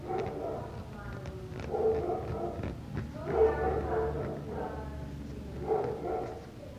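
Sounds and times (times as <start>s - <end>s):
dog barking in the background: 0.0s - 0.8s, 1.6s - 4.8s, 5.6s - 6.4s.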